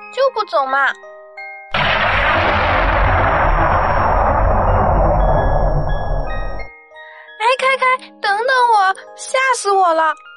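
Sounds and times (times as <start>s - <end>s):
speech: 0.1s - 1.1s, 8.6s - 10.2s
thunder clap: 1.8s - 6.7s.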